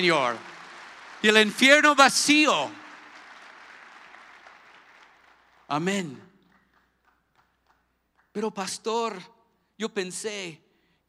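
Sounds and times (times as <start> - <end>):
speech: 0.0 - 0.5, 1.2 - 2.8, 5.7 - 6.3, 8.4 - 11.0
church congregation applauding: 0.0 - 8.8.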